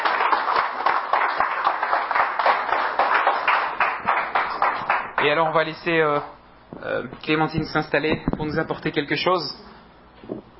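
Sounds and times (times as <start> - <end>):
audience applause: 0.0 - 5.4
speech: 5.2 - 10.3.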